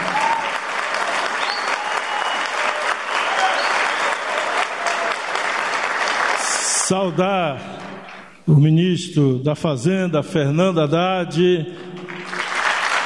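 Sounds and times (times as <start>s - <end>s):
warm applause: 0.0s - 8.3s, 11.8s - 13.0s
speech: 6.9s - 7.7s, 8.5s - 11.9s.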